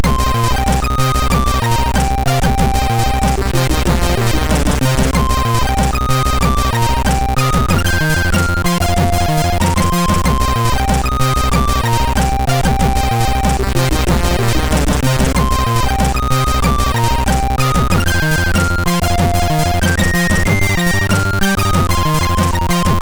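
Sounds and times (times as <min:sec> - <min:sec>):
MOS6581 SID chip synth sound: 0:00.0 - 0:23.0.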